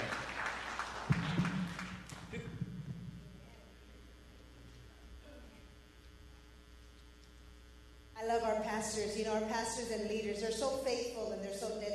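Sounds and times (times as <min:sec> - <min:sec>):
audience hand clapping: 0:00.0 - 0:02.5
speech: 0:08.3 - 0:11.9.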